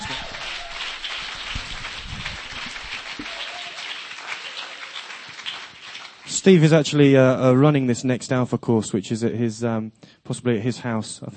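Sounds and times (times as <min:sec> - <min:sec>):
audience applause: 0:00.0 - 0:06.7
speech: 0:06.4 - 0:11.3.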